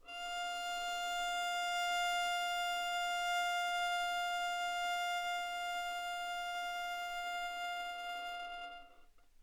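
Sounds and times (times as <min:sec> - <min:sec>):
violin: 0:00.0 - 0:09.1.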